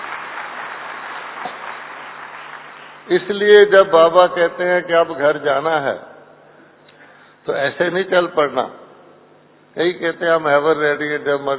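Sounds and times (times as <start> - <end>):
audience clapping hands: 0.0 - 3.1
speech: 3.1 - 6.1, 7.4 - 8.8, 9.8 - 11.5.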